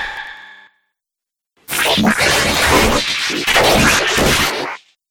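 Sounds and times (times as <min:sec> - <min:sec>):
sci-fi dubstep effects: 0:01.7 - 0:04.8.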